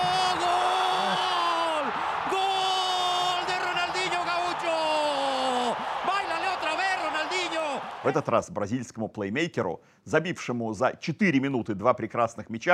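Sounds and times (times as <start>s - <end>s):
huge stadium crowd roaring and cheering: 0.0s - 8.4s
speech: 8.0s - 12.7s.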